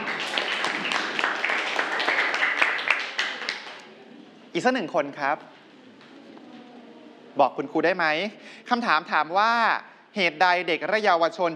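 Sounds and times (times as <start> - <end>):
classroom applause for a classmate: 0.0 - 4.0
speech: 4.6 - 5.6, 7.4 - 11.5.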